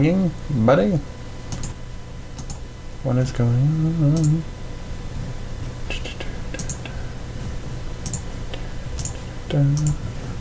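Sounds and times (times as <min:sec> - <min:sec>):
speech: 0:00.0 - 0:01.2, 0:03.0 - 0:04.6, 0:09.5 - 0:10.1
buttons being pushed, clicking: 0:01.5 - 0:01.8, 0:06.6 - 0:06.9, 0:08.0 - 0:08.3, 0:09.0 - 0:10.0.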